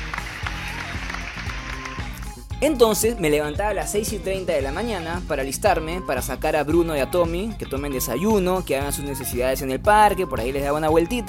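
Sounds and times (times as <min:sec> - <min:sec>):
applause sound effect on a Spanish-language radio show: 0:00.0 - 0:02.4
speech: 0:02.6 - 0:11.2.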